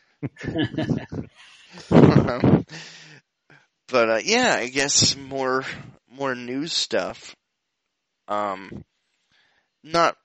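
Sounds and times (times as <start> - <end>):
laughter: 0.2 - 3.1, 4.0 - 7.2, 8.3 - 8.6
speech: 0.2 - 3.2, 3.9 - 7.4, 8.3 - 8.9, 9.8 - 10.2
heavy snorting breathing: 2.6 - 3.1.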